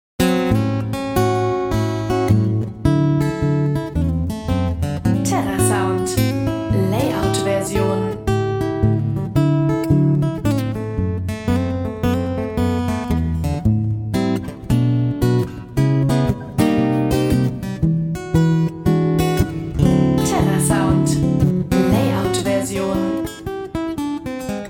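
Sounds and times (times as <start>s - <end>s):
two-handed blues: 0.2s - 24.6s.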